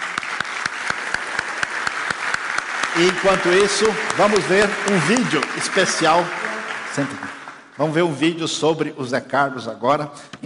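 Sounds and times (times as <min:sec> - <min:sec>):
round of applause: 0:00.0 - 0:08.0
speech: 0:03.0 - 0:10.4.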